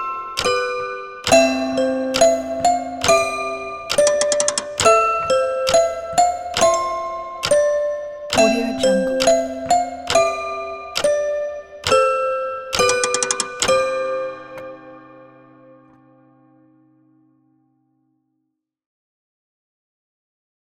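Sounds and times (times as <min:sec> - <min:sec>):
music box: 0:00.0 - 0:15.3.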